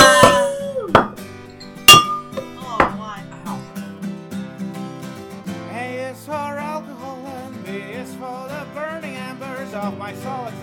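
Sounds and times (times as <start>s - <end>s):
glasses clinking in a toast: 0.0s - 3.4s.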